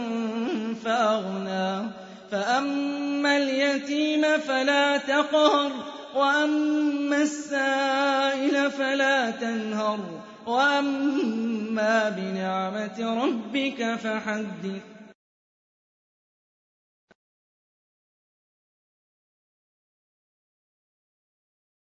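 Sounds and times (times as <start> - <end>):
Quran recitation: 0.0 - 15.2.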